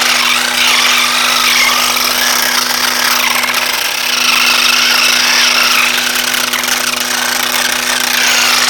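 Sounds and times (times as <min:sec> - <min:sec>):
electric motor: 0:00.0 - 0:08.6.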